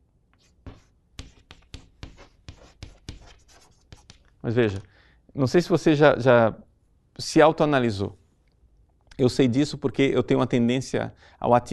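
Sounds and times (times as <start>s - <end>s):
pen scratching on paper writing by hand: 0.3s - 4.3s
speech: 4.4s - 8.2s, 9.2s - 11.7s.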